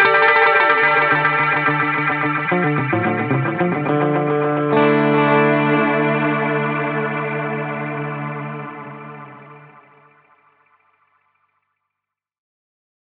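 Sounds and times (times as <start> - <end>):
Catalinbread Echorec style low cut echo effect: 0.0 - 10.4.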